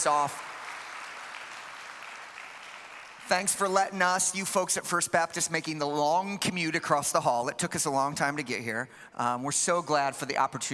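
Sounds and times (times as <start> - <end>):
speech: 0.0 - 0.5, 3.3 - 10.7
audience applause: 0.0 - 3.7.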